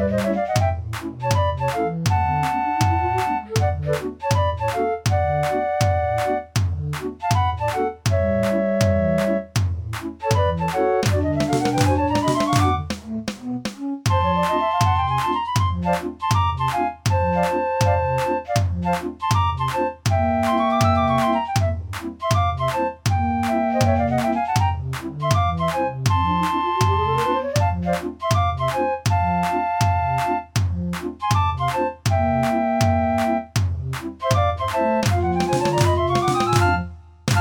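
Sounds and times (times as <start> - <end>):
street organ playing a commercial tune: 0.0 - 37.3.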